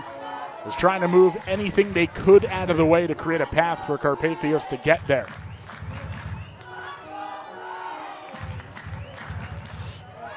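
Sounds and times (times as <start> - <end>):
baseball crowd chanting a team chant: 0.0 - 10.3
steady stadium noise: 0.0 - 10.3
speech: 0.6 - 5.5.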